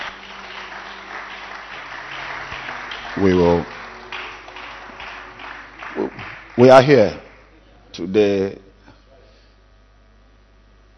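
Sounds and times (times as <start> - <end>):
audience clapping: 0.0 - 7.6
speech: 3.2 - 3.8, 6.6 - 7.2, 8.0 - 8.6.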